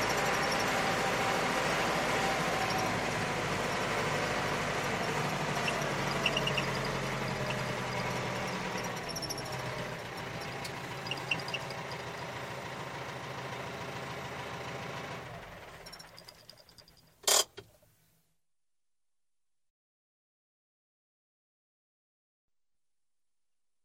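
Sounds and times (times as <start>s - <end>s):
tractor: 0.0s - 17.8s.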